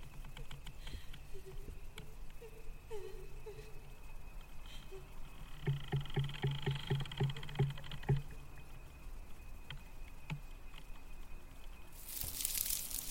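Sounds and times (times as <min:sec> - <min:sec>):
faint wavering voice-like hum: 0:01.1 - 0:07.6.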